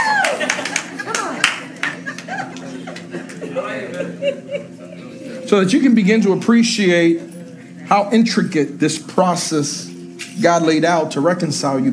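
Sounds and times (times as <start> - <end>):
audience clapping: 0.0 - 3.6
laughter: 0.0 - 5.8
speech: 5.5 - 7.3, 7.9 - 11.9.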